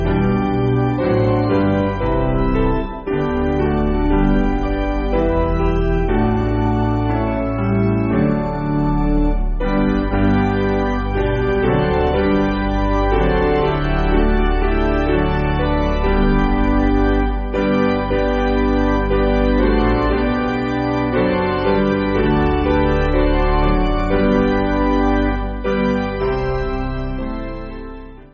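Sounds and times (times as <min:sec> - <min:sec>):
piano piece: 0:00.0 - 0:28.3.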